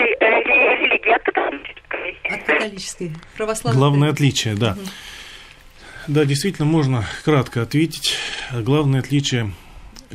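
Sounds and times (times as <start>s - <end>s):
mobile phone call breaking up: 0.0s - 2.7s
speech: 2.6s - 5.2s, 6.1s - 10.1s.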